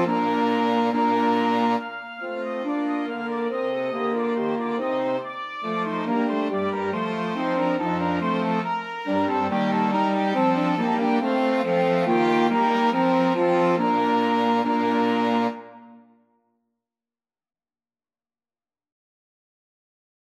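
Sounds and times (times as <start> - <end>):
flexible mixed ensemble of four players: 0.0 - 16.0.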